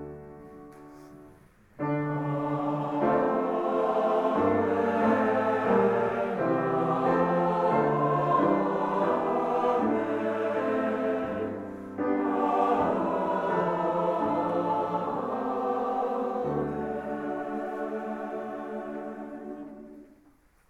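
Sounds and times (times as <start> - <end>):
Low Mass amen sung: 1.8 - 20.3.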